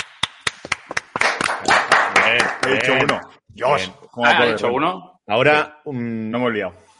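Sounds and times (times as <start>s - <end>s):
hand clapping: 0.0s - 3.4s
speech: 1.6s - 6.8s.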